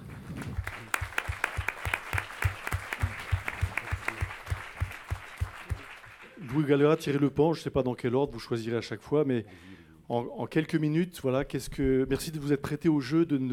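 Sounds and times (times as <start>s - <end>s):
audience applause: 0.0s - 6.7s
speech: 6.6s - 13.5s.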